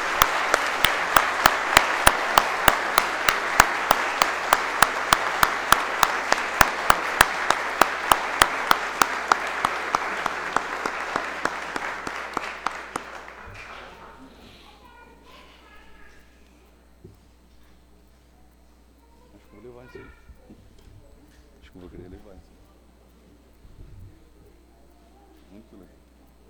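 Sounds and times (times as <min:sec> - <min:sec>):
audience applause: 0:00.0 - 0:14.4.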